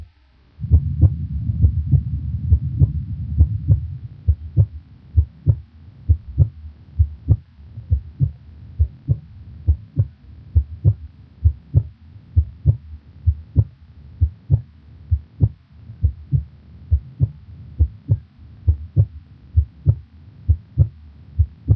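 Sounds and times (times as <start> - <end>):
soft low hum: 0.0 - 21.7
normal heart sounds at pulmonic area through a stethoscope: 0.6 - 21.7.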